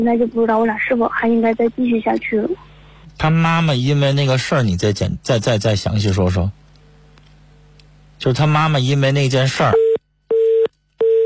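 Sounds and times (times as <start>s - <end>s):
speech: 0.0s - 6.6s, 8.2s - 9.8s
telephone busy tone after a call drops: 9.8s - 11.2s.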